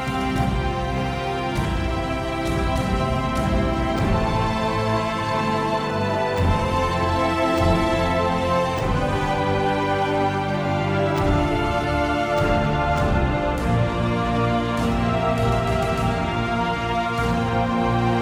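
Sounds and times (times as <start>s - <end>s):
fight music: 0.0s - 18.2s.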